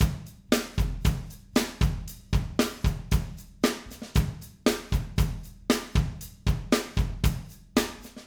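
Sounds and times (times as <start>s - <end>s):
live acoustic drums playing: 0.0s - 8.2s.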